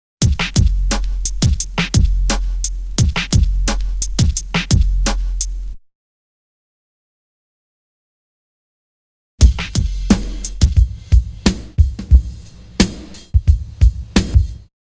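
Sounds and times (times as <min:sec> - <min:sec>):
drum loop: 0:00.2 - 0:05.8, 0:09.4 - 0:14.7.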